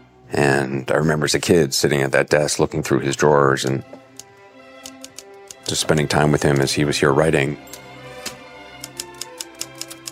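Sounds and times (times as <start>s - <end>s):
speech: 0.3s - 4.0s, 5.7s - 7.9s
typewriter keys clacking: 4.8s - 6.8s, 7.6s - 10.1s.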